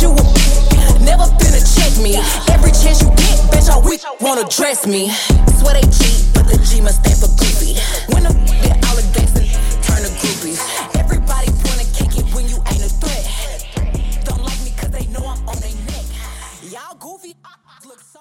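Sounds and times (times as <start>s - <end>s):
mixshow drum beat: 0.0s - 3.9s, 5.3s - 15.8s.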